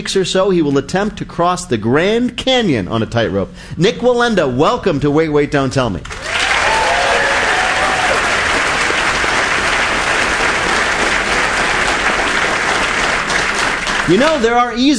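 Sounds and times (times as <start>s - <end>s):
speech: 0.0s - 6.3s, 14.1s - 14.9s
studio audience applause: 6.0s - 14.7s.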